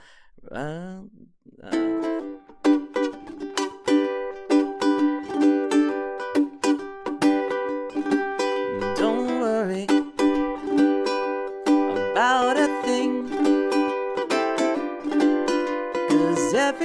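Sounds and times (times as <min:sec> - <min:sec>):
ukulele strummed on an open G chord without muting: 0:01.6 - 0:16.8.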